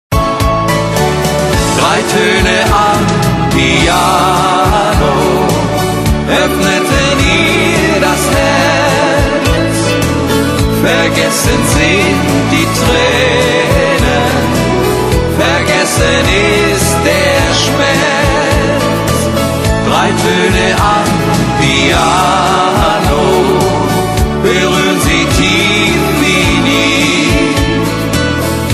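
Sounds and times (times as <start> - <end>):
piano: 0.1 - 28.7.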